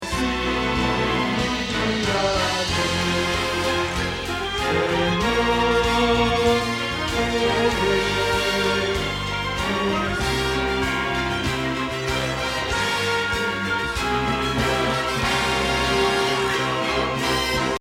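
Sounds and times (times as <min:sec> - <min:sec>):
bass: 0:00.0 - 0:17.7.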